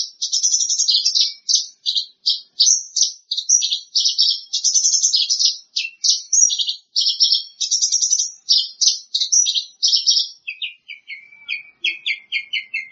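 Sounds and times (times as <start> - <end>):
bird song with varied chirps and warbled trills: 0.0 - 12.8.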